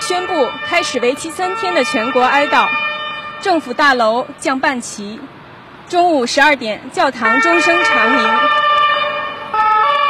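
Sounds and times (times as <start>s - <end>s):
police car siren passing: 0.0s - 4.6s, 7.2s - 10.0s
speech: 0.1s - 8.6s.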